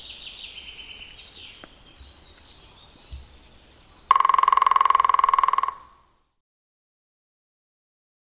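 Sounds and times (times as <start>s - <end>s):
green woodpecker: 1.5s - 6.2s.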